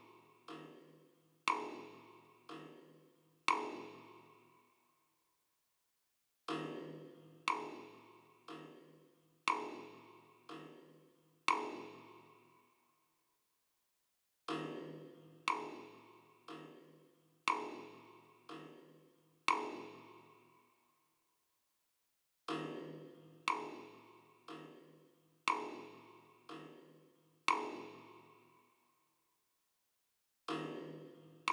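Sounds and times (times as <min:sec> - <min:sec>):
drums and percussion: 0:00.0 - 0:04.2, 0:06.5 - 0:12.2, 0:14.5 - 0:20.2, 0:22.5 - 0:28.2, 0:30.5 - 0:31.5.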